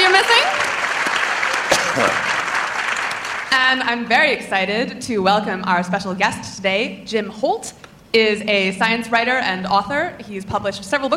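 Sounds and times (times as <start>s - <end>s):
audience applause: 0.0s - 3.5s
speech: 3.7s - 11.1s.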